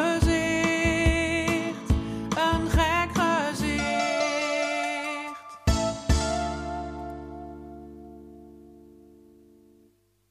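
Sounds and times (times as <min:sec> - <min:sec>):
person singing a song: 0:00.0 - 0:06.8.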